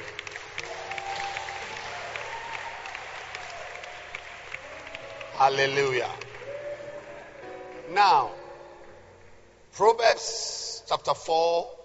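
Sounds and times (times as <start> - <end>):
audience clapping hands: 0.0 - 7.9
speech: 5.4 - 6.3, 7.9 - 8.4, 9.8 - 11.8.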